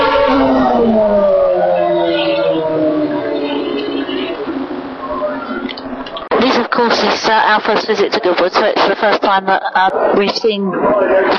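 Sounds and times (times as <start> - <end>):
Formula One racing car engine approaching: 0.0 - 6.3
speech: 7.4 - 11.3.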